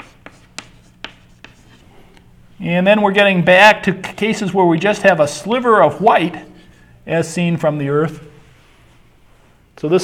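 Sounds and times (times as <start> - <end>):
scratchy pen strokes in handwriting: 0.0 - 1.9
speech: 2.6 - 6.5, 7.1 - 8.3, 9.8 - 10.0.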